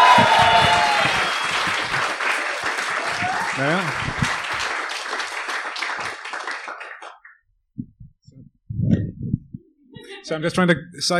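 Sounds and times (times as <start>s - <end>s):
audience applause: 0.0s - 7.3s
speech: 10.3s - 11.1s.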